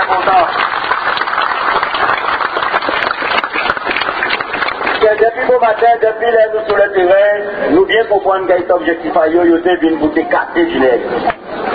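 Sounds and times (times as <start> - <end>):
audience applauding: 0.0 - 5.4
speech: 0.1 - 0.6, 5.3 - 11.3.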